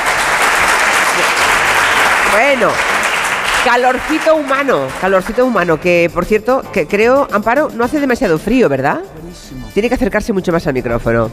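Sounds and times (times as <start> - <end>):
audience applause: 0.0 - 5.7
speech: 2.3 - 2.9, 3.6 - 11.3.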